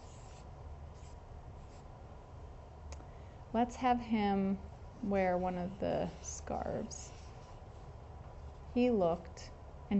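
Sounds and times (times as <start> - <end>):
pen or pencil strokes on paper while drawing: 0.0 - 1.9, 5.1 - 8.8
speech: 3.5 - 7.2, 8.8 - 9.9.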